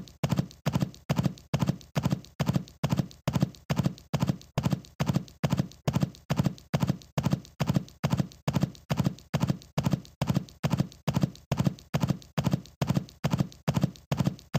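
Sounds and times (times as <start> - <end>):
horse running, hoofbeats galloping: 0.0 - 14.5.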